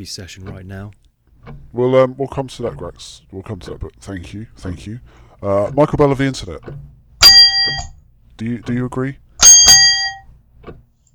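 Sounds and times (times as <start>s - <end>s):
speech: 0.0s - 6.9s, 7.6s - 9.2s
bright ringing ding sound effect: 7.2s - 8.0s, 9.4s - 10.3s.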